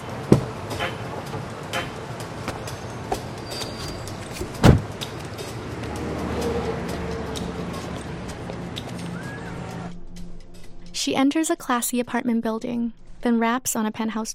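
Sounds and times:
SUV engine rumbling while pulling up and stopping at curb: 0.0 - 9.9
road noise: 0.0 - 10.0
speech: 11.0 - 14.3.

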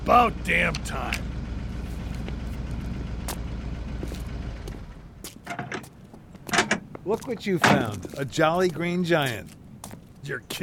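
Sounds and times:
truck engine rumbling in the distance: 0.0 - 10.6
speech: 0.1 - 1.3, 7.1 - 9.6, 10.2 - 10.6
faint clanks and rattles: 2.0 - 8.2.

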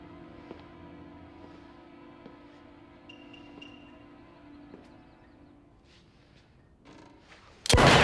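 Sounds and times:
low sustained tones: 0.0 - 5.8
gunshot from a handgun: 7.7 - 8.0.

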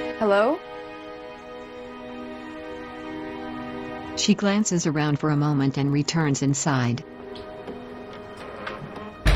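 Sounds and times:
speech: 0.2 - 0.7, 4.2 - 7.5
door being shut and locked: 8.4 - 9.3.

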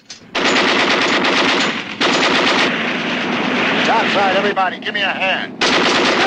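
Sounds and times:
heavy machine-gun fire from a boat's gun tower: 0.3 - 4.6, 5.6 - 6.2.

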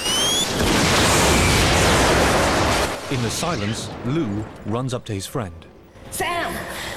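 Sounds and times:
bazooka blast destroying a laser gun: 0.0 - 4.6
speech: 3.2 - 6.8.

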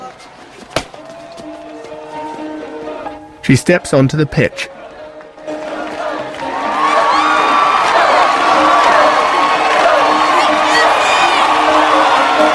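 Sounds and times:
crowd cheering at a baseball stadium: 0.0 - 12.5
speech: 3.5 - 4.7.

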